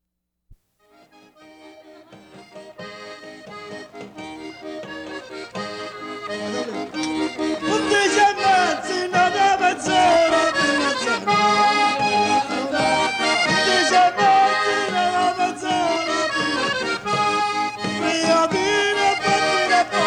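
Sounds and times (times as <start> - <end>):
stornello with tarantella folk music: 0.9 - 20.0
laughter: 5.7 - 20.0.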